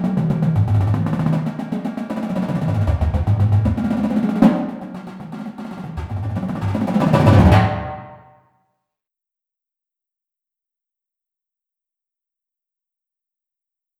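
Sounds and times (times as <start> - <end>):
drum triplet rolls: 0.0 - 8.2.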